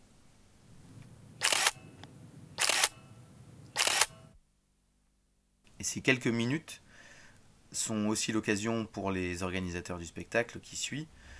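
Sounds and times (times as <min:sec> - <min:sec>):
soft hum: 0:00.0 - 0:08.0
camera shutter bursts during a photo shoot: 0:01.4 - 0:01.8, 0:02.6 - 0:03.0, 0:03.7 - 0:04.3
speech: 0:05.8 - 0:06.8, 0:07.7 - 0:11.3.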